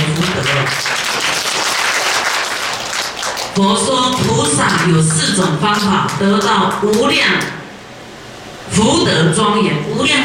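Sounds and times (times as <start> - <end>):
audience clapping hands: 0.0 - 7.1
speech: 3.6 - 7.6, 8.8 - 10.2.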